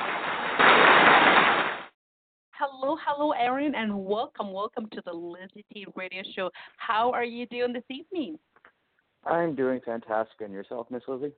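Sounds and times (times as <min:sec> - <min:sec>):
applause: 0:00.0 - 0:01.9
speech: 0:02.6 - 0:08.5, 0:09.2 - 0:11.3.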